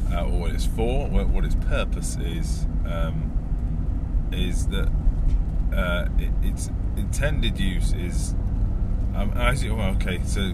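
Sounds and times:
car engine and road rumble on a daily commute: 0:00.0 - 0:10.5
speech: 0:00.2 - 0:03.4, 0:04.3 - 0:08.4, 0:09.2 - 0:10.5.

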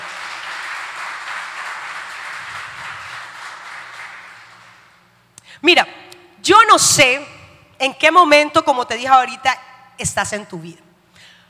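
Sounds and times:
audience applause: 0:00.0 - 0:05.0
speech: 0:05.6 - 0:10.8.

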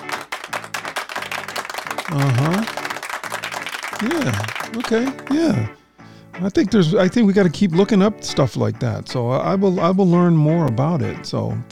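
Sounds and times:
applause: 0:00.0 - 0:05.7
speech: 0:02.1 - 0:02.6, 0:04.0 - 0:05.8, 0:06.4 - 0:11.7.

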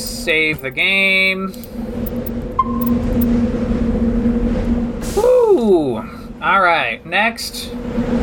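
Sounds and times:
Mako armored vehicle engine drone in a video game: 0:00.0 - 0:08.2
speech: 0:00.2 - 0:02.0, 0:05.7 - 0:08.2
high beep: 0:02.6 - 0:03.3.

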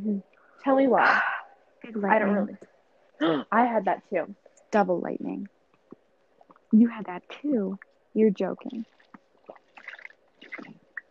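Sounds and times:
speech: 0:00.6 - 0:01.3, 0:01.9 - 0:05.6, 0:06.7 - 0:09.0
person drinking water loudly: 0:08.9 - 0:11.0.

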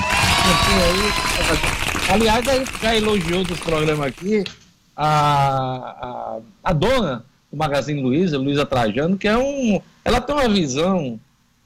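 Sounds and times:
clapping: 0:00.0 - 0:04.3
speech: 0:00.5 - 0:11.6.

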